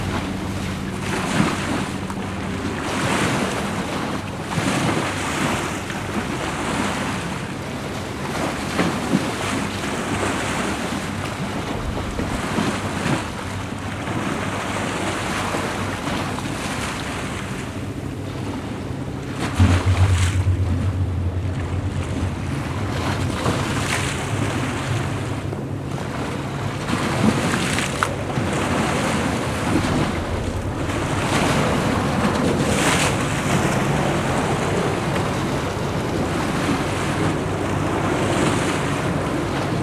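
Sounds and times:
planes coming and going from London City Airport: 0.0 - 8.7, 9.3 - 39.8
high choppy tide of River Thames hitting the side walls at Greenland Dock: 0.0 - 39.8.

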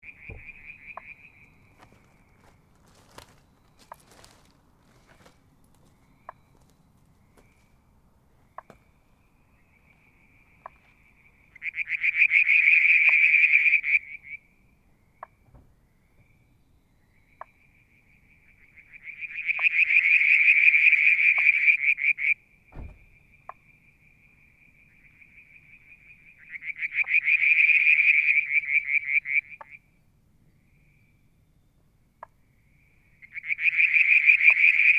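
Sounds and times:
frog chorus trilling: 0.0 - 5.3, 8.5 - 15.4, 16.0 - 22.5, 23.2 - 30.0, 32.1 - 34.9
low thump: 22.7 - 23.2.

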